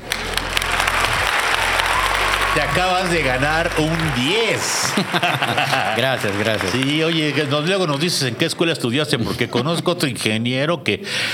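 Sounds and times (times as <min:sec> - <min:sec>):
low hum: 0:00.0 - 0:05.0
crowd applauding: 0:00.0 - 0:08.6
laughter: 0:00.4 - 0:10.1
speech: 0:02.6 - 0:11.3.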